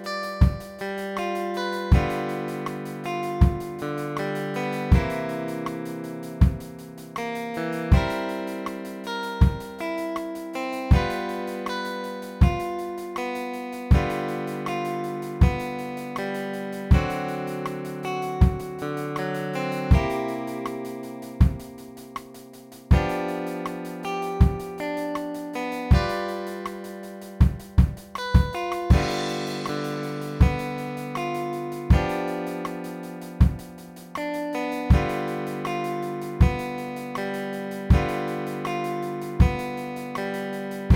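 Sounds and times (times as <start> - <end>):
electric bass playing simple blues in G: 0.5 - 40.9.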